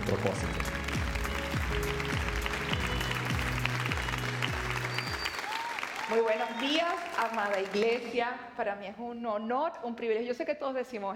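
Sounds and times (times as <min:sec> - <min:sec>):
warm applause from audience: 0:00.0 - 0:08.2
speech: 0:06.2 - 0:11.1.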